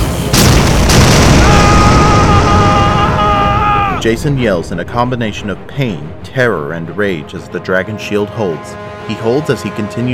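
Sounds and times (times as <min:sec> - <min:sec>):
explosion: 0:00.0 - 0:06.6
speech: 0:04.0 - 0:10.1.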